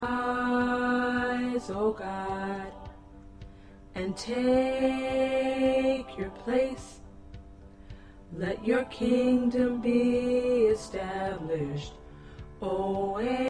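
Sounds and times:
tenor singing: 0.0s - 3.0s, 4.0s - 7.1s, 8.3s - 12.0s, 12.6s - 13.4s.

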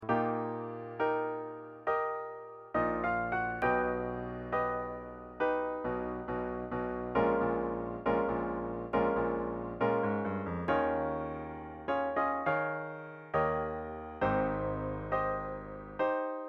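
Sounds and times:
piano: 0.0s - 16.4s.

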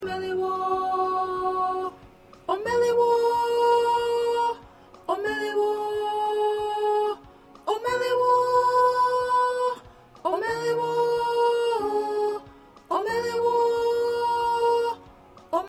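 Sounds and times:
first soprano singing: 0.0s - 15.6s.

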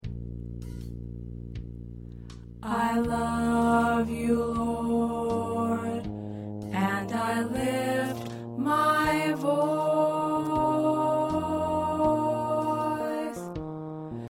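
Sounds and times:
alto choir singing: 2.6s - 13.6s.

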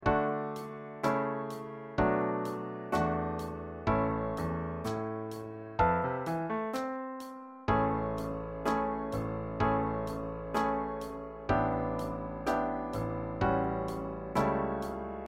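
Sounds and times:
piano: 0.0s - 15.2s.

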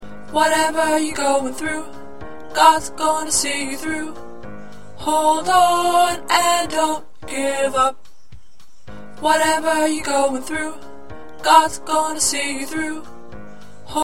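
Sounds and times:
tenor choir part singing: 0.4s - 4.2s, 5.0s - 7.9s, 9.2s - 13.1s.

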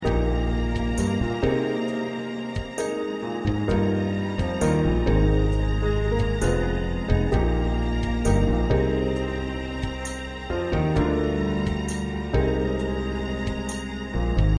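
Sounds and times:
musical accompaniment: 0.0s - 14.5s.

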